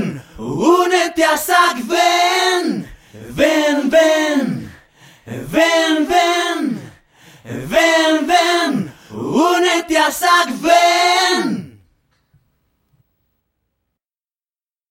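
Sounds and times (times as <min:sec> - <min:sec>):
solo voices: 0:00.0 - 0:11.9.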